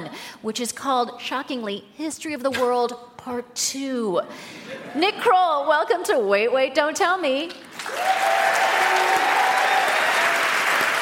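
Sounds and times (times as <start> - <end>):
speech: 0.4 - 8.4
crowd applauding: 7.7 - 11.0.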